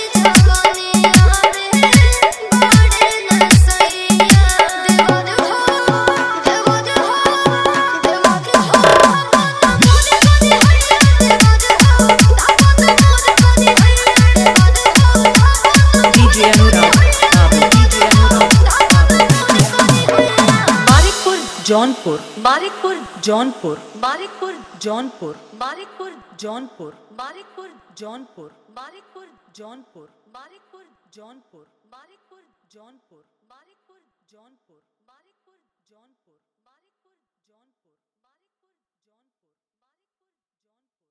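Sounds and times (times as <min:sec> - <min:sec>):
dholki bass dance mix: 0:00.0 - 0:24.4.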